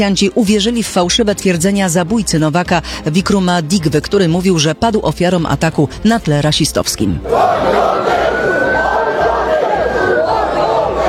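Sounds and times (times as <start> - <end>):
speech: 0.0 - 8.2
rioting crowd roaring: 7.2 - 11.0.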